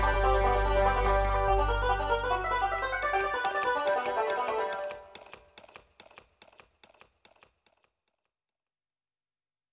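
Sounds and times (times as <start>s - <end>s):
country music: 0.0s - 5.0s.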